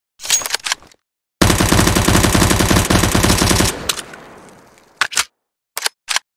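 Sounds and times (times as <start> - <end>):
UMP 45 gun: 1.4 - 5.3.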